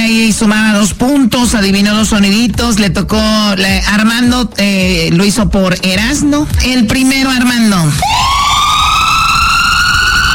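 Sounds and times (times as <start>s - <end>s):
speech: 0.0s - 8.2s
ambulance siren wailing: 8.0s - 10.3s.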